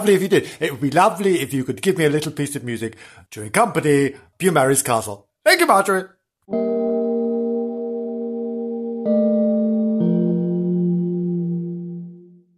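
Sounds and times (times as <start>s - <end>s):
speech: 0.0s - 6.7s
deep tolling bell: 6.5s - 12.3s.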